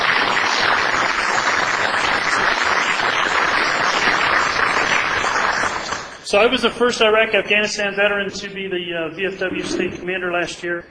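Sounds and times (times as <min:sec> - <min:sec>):
round of applause: 0:00.0 - 0:06.2
speech: 0:06.3 - 0:10.8.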